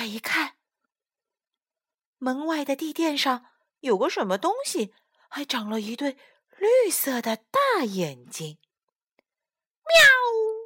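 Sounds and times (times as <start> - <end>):
speech: 0.0 - 0.6, 2.2 - 8.6, 9.9 - 10.5
cat meowing loudly: 9.9 - 10.6.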